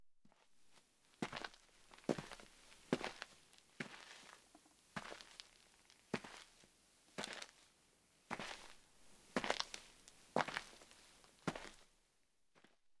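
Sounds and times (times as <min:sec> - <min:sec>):
sneakers walking slowly on gritty dirt: 0:01.2 - 0:06.6, 0:07.2 - 0:07.6, 0:08.3 - 0:11.8.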